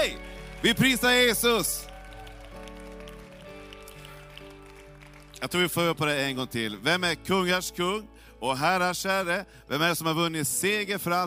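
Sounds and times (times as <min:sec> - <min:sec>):
speech: 0:00.0 - 0:01.9, 0:05.4 - 0:11.2
audience applauding: 0:00.0 - 0:06.4.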